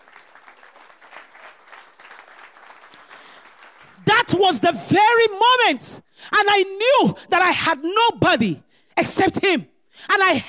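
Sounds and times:
audience clapping: 0:00.0 - 0:04.0
speech: 0:04.3 - 0:10.4.

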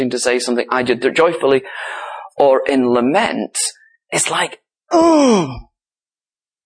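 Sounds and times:
speech: 0:00.0 - 0:05.7
person voicing a wordless groan in imitation: 0:04.9 - 0:05.7.

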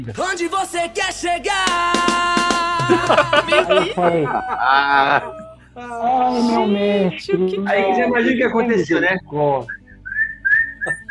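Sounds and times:
speech: 0:00.0 - 0:09.8
laughter: 0:02.8 - 0:05.6
person whistling in imitation of a chattering flock of sparrows: 0:09.7 - 0:11.0.

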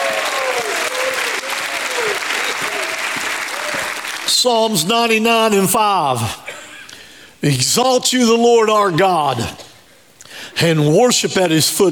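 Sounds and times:
people shouting and whooping praise: 0:00.0 - 0:04.0
audience clapping: 0:00.0 - 0:04.9
speech: 0:04.4 - 0:06.4, 0:07.4 - 0:09.6, 0:10.6 - 0:11.9.

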